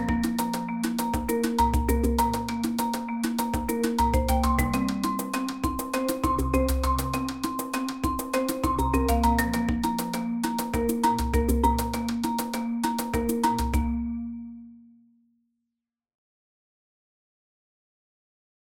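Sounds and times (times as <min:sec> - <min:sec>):
marimba: 0:00.0 - 0:14.5.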